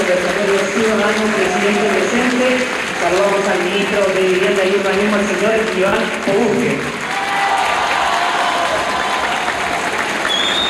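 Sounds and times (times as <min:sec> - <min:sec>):
applause and ovation in a gymnasium: 0:00.0 - 0:10.6
speech: 0:00.9 - 0:07.0.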